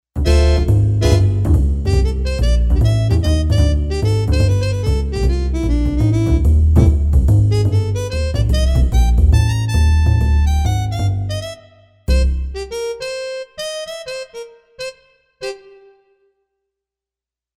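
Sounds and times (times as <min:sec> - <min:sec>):
jazzy synth jam: 0:00.2 - 0:15.9.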